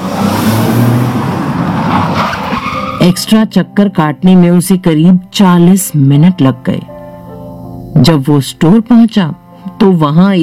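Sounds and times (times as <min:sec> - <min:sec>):
car engine driving through Delhi evening traffic: 0:00.0 - 0:03.1
speech: 0:03.0 - 0:07.0, 0:07.9 - 0:10.4.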